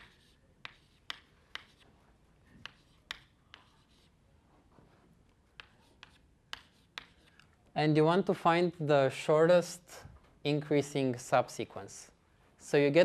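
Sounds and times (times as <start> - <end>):
numbers being written on a board during a lecture: 0.0 - 4.2, 4.8 - 7.5
speech: 7.8 - 13.0.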